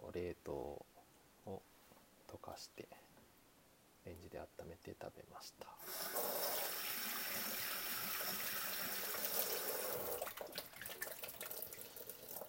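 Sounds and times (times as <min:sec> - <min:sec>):
speech: 0:00.1 - 0:03.1, 0:04.0 - 0:06.2
tap water running: 0:05.8 - 0:12.4.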